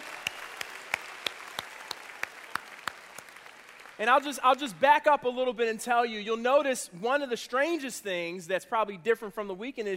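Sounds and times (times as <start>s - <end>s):
audience applause welcoming newcomers: 0.0s - 4.6s
speech: 4.0s - 9.9s.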